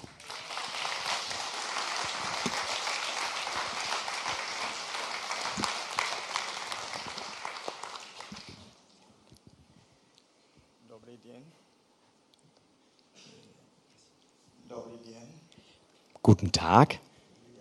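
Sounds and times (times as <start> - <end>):
audience applause: 0.0 - 8.9
speech: 16.3 - 17.0.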